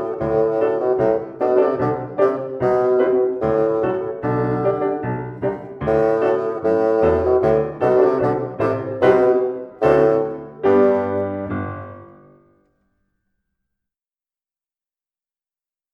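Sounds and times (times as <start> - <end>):
bassoon march bass: 0.0 - 12.3.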